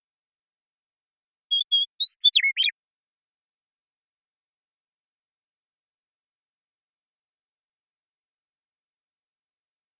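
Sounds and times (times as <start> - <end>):
Western meadowlark whistling: 1.5 - 2.7.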